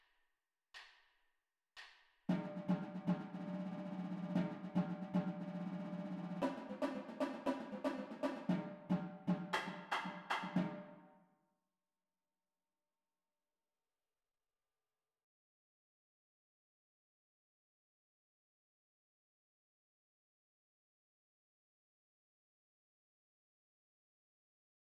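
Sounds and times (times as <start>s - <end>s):
drumline: 2.3s - 10.9s.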